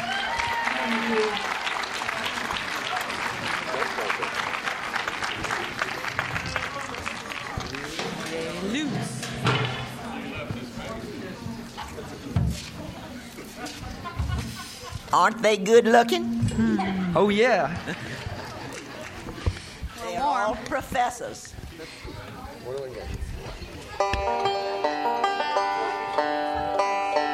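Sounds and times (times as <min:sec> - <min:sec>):
crowd applause: 0:00.0 - 0:12.3, 0:16.5 - 0:19.8
scattered cheers and murmuring voices: 0:00.0 - 0:26.7
laughter: 0:10.9 - 0:15.4, 0:16.1 - 0:19.6
speech: 0:15.2 - 0:18.1, 0:20.7 - 0:22.0, 0:22.7 - 0:23.3.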